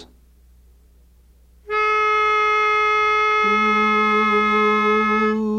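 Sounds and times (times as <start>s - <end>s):
lead melody: 1.7s - 5.4s.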